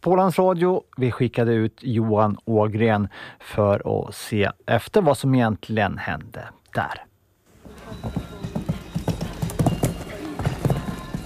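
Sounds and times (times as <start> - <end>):
speech: 0.0 - 7.1, 7.9 - 8.3
outdoor ambience: 6.6 - 11.2
faint voices: 7.5 - 11.2
horse hooves at show jumping competition: 7.5 - 11.2.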